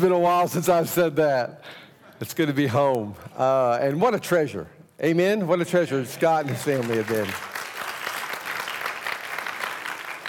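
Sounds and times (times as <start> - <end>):
speech: 0.0 - 7.6
audience applauding: 6.2 - 10.2.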